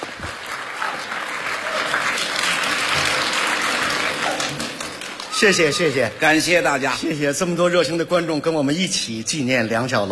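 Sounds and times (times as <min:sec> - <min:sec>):
audience applause: 0:00.0 - 0:06.4
speech: 0:05.4 - 0:10.1.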